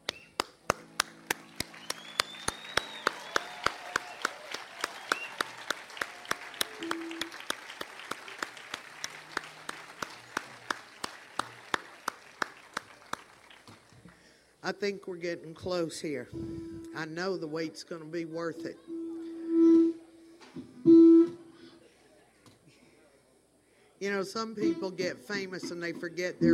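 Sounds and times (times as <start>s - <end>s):
whistle-like tones: 0.0s - 0.4s, 1.6s - 5.8s, 6.6s - 7.4s, 18.9s - 20.2s, 20.8s - 21.7s
audience applauding: 0.0s - 14.3s
speech: 14.7s - 18.9s, 24.2s - 26.5s.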